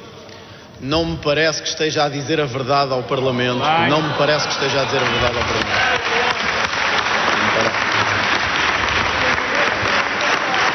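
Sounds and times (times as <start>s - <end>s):
speech: 0.8s - 6.3s
applause in parliament: 4.2s - 10.7s.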